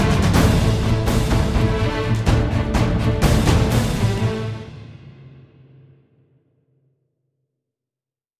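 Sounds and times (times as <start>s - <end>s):
battle music: 0.0s - 5.7s.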